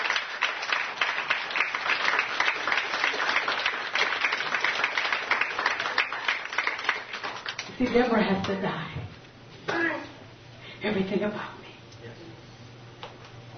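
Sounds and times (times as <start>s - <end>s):
crowd clapping and applauding: 0.0s - 8.6s
speech: 7.8s - 9.0s, 10.8s - 11.6s.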